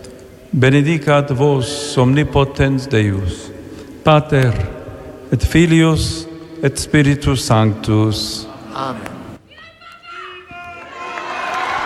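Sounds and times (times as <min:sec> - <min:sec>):
speech: 0:00.5 - 0:09.1
applause of the faithful after prayer: 0:10.6 - 0:11.8.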